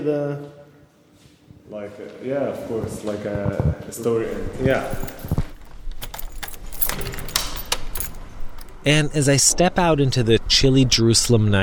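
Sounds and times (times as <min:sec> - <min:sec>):
speech: 0:00.0 - 0:00.6, 0:01.7 - 0:05.4, 0:08.8 - 0:11.6
door being locked: 0:04.5 - 0:08.9.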